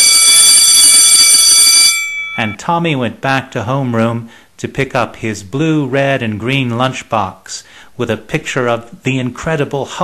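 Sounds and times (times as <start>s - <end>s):
school bell ringing for lunch: 0.0s - 2.6s
speech: 2.4s - 10.0s.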